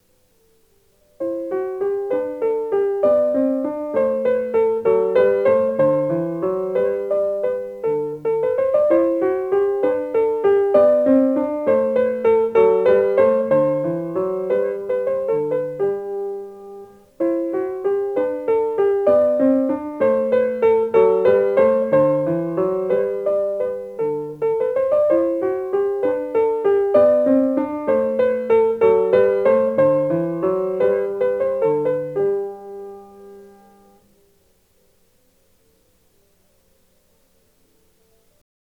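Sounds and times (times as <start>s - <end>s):
antique melody: 1.2s - 34.0s.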